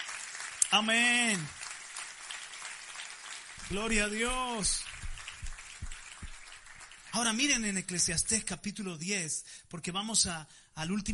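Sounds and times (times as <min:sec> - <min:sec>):
audience applause: 0:00.0 - 0:08.1
speech: 0:00.7 - 0:01.6, 0:03.7 - 0:04.9, 0:07.2 - 0:11.1.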